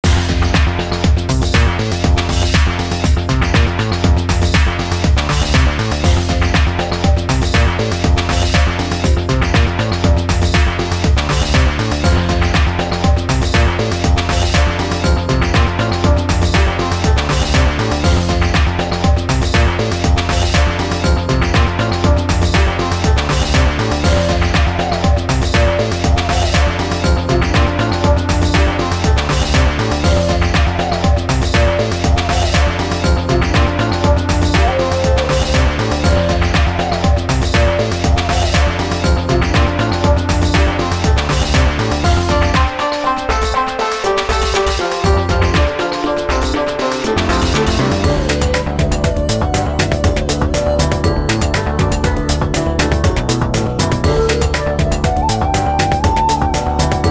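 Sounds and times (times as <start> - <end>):
Asian tune: 0.0 - 57.0.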